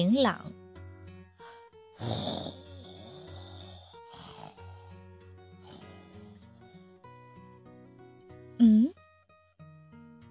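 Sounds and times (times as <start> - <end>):
speech: 0.0 - 0.5, 2.0 - 2.6, 8.6 - 9.0
snoring: 2.0 - 4.9, 5.6 - 6.6.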